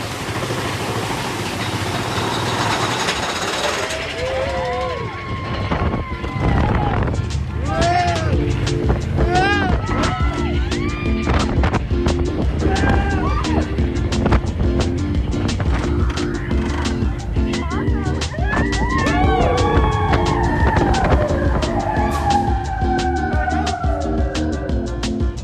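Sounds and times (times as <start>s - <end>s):
Big Thunder Mountain roller coaster ride going down drop: 0.0s - 25.3s.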